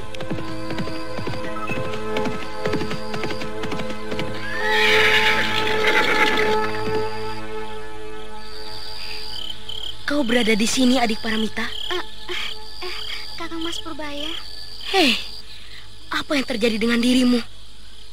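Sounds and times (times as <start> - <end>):
horse hooves galloping: 0.0 - 7.4
horse neighing: 4.4 - 6.8
speech: 10.3 - 11.7, 13.8 - 15.3, 16.3 - 17.5.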